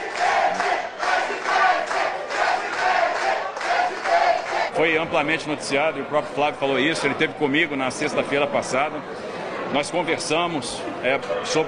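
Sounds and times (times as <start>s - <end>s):
crowd shouting president: 0.0s - 4.8s
speech: 4.8s - 11.6s.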